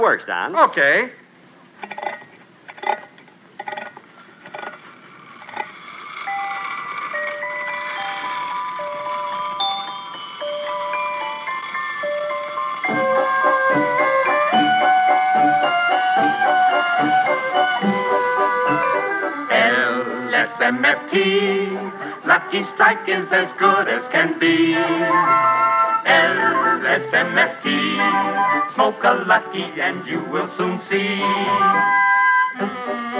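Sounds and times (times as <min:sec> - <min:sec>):
speech: 0:00.0 - 0:01.2, 0:21.1 - 0:21.5, 0:22.5 - 0:32.0, 0:32.6 - 0:33.1
wind-up toy merry-go-round clicks: 0:01.8 - 0:14.6
wind-up toy merry-go-round playing a music-box melody: 0:05.7 - 0:32.6.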